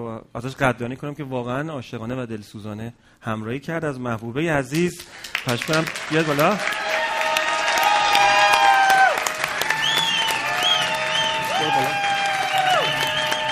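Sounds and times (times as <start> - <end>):
speech: 0.0 - 6.8
audience applause at a staff appreciation event: 5.0 - 13.5
excited shouting and cheering voices: 6.6 - 13.5.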